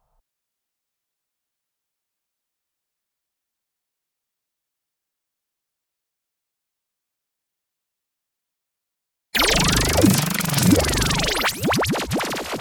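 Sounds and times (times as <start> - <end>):
sound effects: 9.4 - 12.6.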